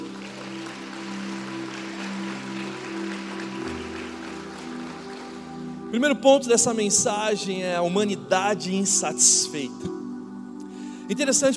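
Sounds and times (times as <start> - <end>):
audience applauding: 0.0 - 5.9
sustained low keyboard chords: 0.0 - 11.5
speech: 5.9 - 10.0, 11.1 - 11.5.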